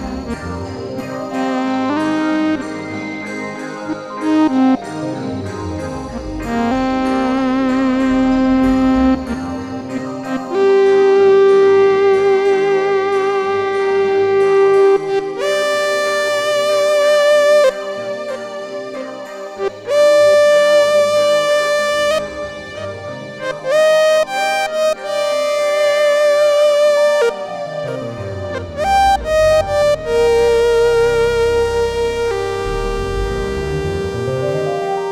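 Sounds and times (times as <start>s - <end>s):
SUPER6 synthesizer solo: 0.0s - 35.1s.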